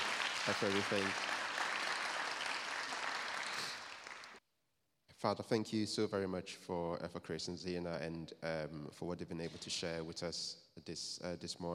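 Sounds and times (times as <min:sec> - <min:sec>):
audience clapping hands: 0:00.0 - 0:04.4
speech: 0:00.5 - 0:01.3, 0:05.2 - 0:11.7.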